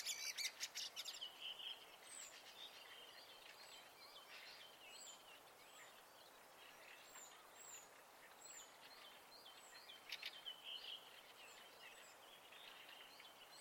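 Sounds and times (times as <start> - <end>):
birds singing at night in spring: 0.0 - 13.5.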